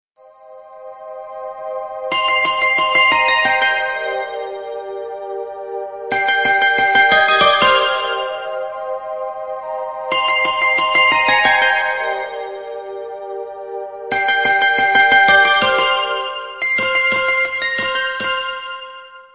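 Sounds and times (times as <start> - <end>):
ambient mood music: 0.5 - 17.8.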